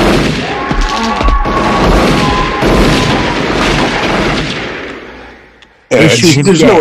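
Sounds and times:
heavy gunfire from shotguns and handguns in the horror film Nightbreed: 0:00.0 - 0:05.4.

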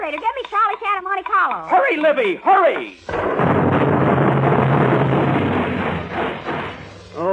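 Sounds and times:
speech: 0:00.1 - 0:04.2
bomb explosion: 0:03.1 - 0:07.2.

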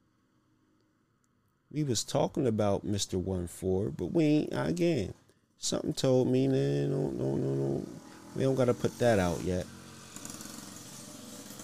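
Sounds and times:
speech: 0:01.7 - 0:09.8
motorbike engine droning: 0:06.1 - 0:11.6.

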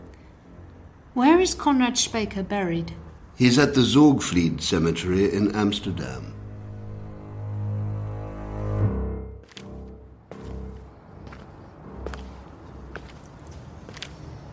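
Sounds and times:
low steady hum: 0:00.0 - 0:13.8
speech: 0:01.2 - 0:06.4
footsteps walking into Zorgvliet Cemetery in Amsterdam: 0:09.4 - 0:14.5.

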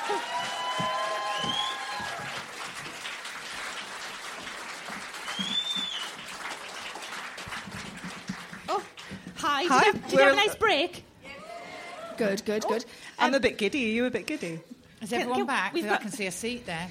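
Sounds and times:
audience clapping: 0:00.0 - 0:10.1
speech: 0:09.7 - 0:11.1, 0:12.2 - 0:16.8.

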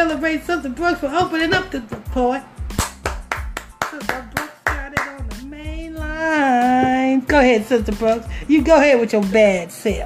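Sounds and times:
speech: 0:00.0 - 0:02.5, 0:06.3 - 0:10.0
people clapping: 0:02.8 - 0:05.2.

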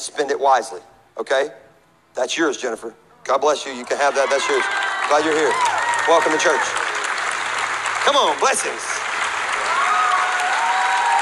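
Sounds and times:
speech: 0:00.0 - 0:06.8, 0:08.0 - 0:08.9
audience applauding: 0:03.8 - 0:11.2.

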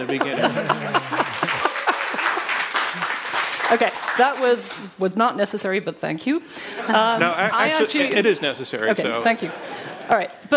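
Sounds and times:
speech: 0:00.0 - 0:01.0, 0:03.7 - 0:10.5
laughter: 0:00.0 - 0:03.2, 0:06.6 - 0:08.4
audience clapping: 0:00.0 - 0:04.9.

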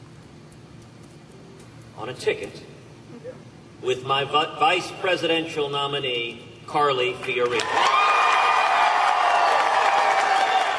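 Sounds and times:
speech: 0:02.0 - 0:07.8
crowd cheering and applauding: 0:07.5 - 0:10.7.

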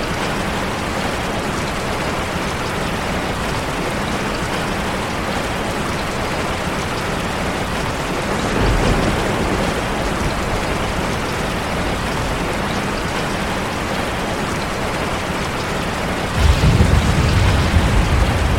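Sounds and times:
steady rain with raindrops pattering: 0:00.0 - 0:18.5.

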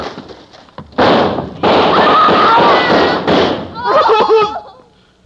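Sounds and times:
police gunshots: 0:01.0 - 0:03.8
laughter: 0:03.8 - 0:04.9.

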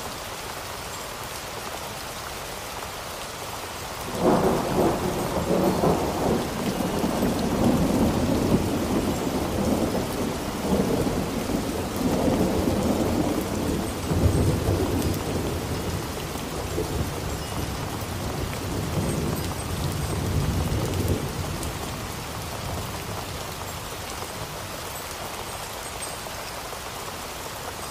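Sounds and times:
steady rain: 0:00.0 - 0:27.9
deep rumble of thunder: 0:04.1 - 0:23.0.

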